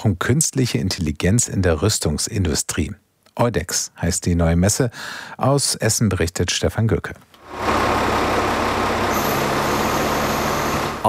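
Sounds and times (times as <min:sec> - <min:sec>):
speech: 0:00.0 - 0:08.2
military truck driving into exhibition hall: 0:07.4 - 0:11.0.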